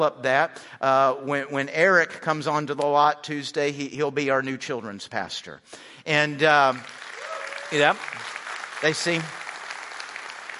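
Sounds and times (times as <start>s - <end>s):
speech: 0.0s - 7.0s, 7.7s - 9.4s
audience clapping: 6.4s - 10.5s.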